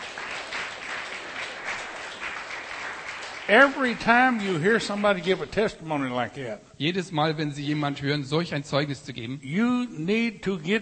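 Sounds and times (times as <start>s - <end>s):
steady applause from a crowd: 0.0s - 5.4s
speech: 3.5s - 10.8s.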